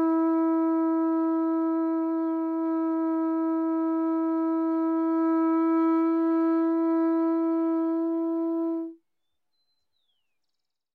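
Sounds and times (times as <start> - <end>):
pututo wind instrument blasts: 0.0 - 9.0.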